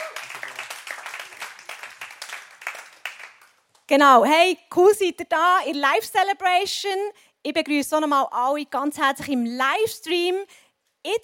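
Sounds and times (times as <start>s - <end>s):
audience applause: 0.0s - 3.6s
speech: 3.9s - 11.2s.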